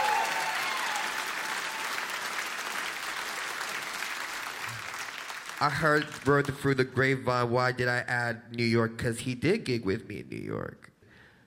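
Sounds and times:
high whoop or whistle: 0.0 - 2.0
crowd applauding and cheering: 0.0 - 6.7
speech: 5.6 - 10.9.

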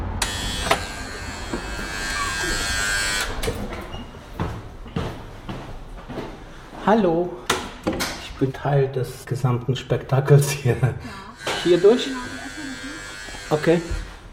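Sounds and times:
door buzzer at a stage entrance: 0.2 - 3.6, 11.4 - 14.2
speech: 6.9 - 7.4, 8.4 - 12.3, 13.5 - 14.0.

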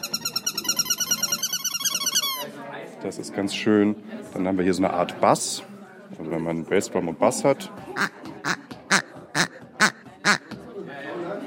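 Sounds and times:
small squeaky toy chicken: 0.0 - 2.5, 8.0 - 10.5
speech: 3.0 - 8.2.

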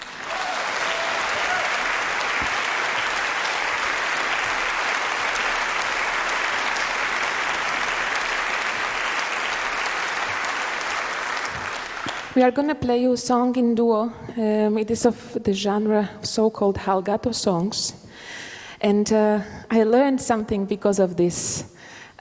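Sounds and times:
audience applause: 0.0 - 12.4
speech: 12.4 - 22.2.

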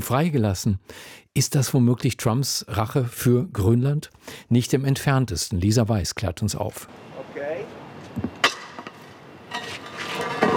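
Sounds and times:
speech: 0.0 - 8.4
heavy manhole cover shoved across cobblestones with a long tool in central Rome: 8.4 - 10.5.

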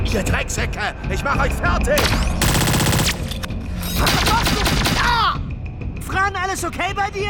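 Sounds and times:
speech: 0.1 - 2.4, 6.1 - 7.2
gunfire, shots fired in a room: 2.0 - 3.4, 4.0 - 5.1.

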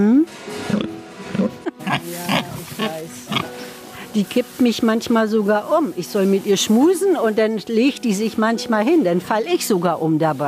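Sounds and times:
pigs grunting: 0.7 - 3.8
speech: 4.2 - 10.4.

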